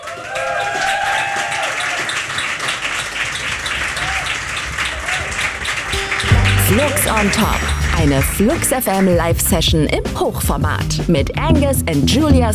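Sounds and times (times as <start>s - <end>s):
audience applause at a live radio session on a rooftop terrace: 0.0s - 9.2s
speech: 6.7s - 12.5s.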